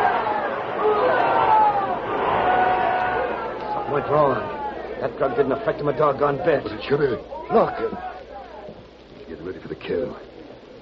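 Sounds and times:
excited yells: 0.0s - 6.6s, 7.3s - 8.7s
large crowd roaring and shouting: 0.0s - 8.8s
speech: 4.1s - 8.2s, 9.4s - 10.3s.

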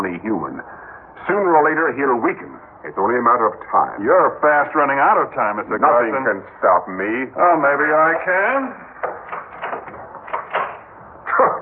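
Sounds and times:
speech: 0.2s - 8.9s
door being shut and locked: 8.9s - 11.1s.

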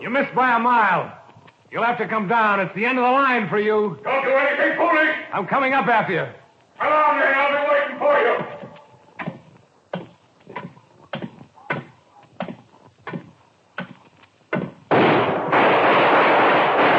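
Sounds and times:
speech: 0.0s - 8.5s
thuds: 8.4s - 15.7s
gunshot in a radio drama: 14.6s - 16.9s.

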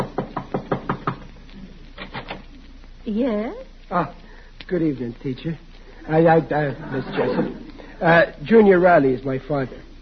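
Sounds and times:
knocking on an apartment door: 0.0s - 1.3s
speech: 3.1s - 9.8s
laughter: 6.5s - 7.9s.

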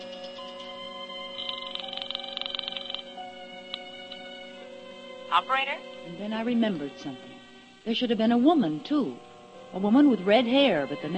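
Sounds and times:
telephone being dialed: 1.4s - 3.1s
speech: 5.3s - 11.1s.

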